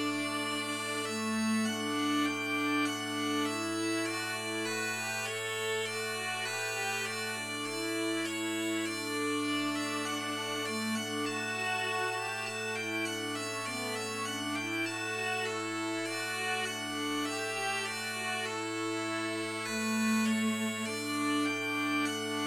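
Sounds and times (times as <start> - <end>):
MIDI viola smallpipes: 0.0 - 22.4.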